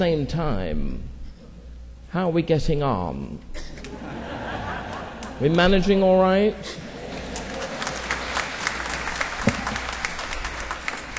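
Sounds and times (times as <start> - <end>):
speech: 0.0 - 1.1, 2.1 - 4.2, 5.4 - 6.8
laughter: 3.8 - 5.8, 6.6 - 9.2
audience applauding: 6.9 - 11.1.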